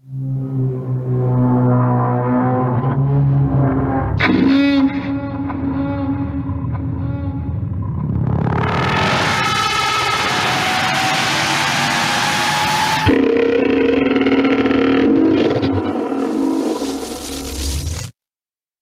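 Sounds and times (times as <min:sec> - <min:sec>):
angry whale roar sound effect from Star Trek 3: 0:00.2 - 0:17.9.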